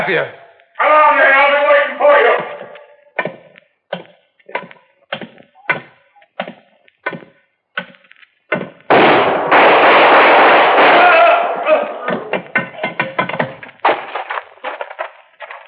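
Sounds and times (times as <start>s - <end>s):
speech: 0.0s - 2.6s
gunshots in a radio drama: 8.9s - 12.6s.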